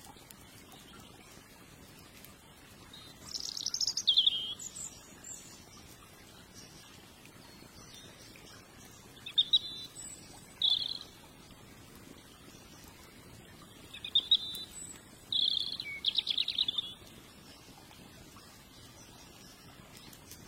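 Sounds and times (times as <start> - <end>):
fire crackling: 0.0 - 20.4
birdsong chirps and trills by a gentle river: 2.9 - 20.4.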